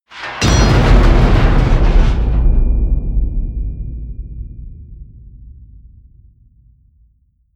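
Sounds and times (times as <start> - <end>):
metal hit: 0.1 - 6.1.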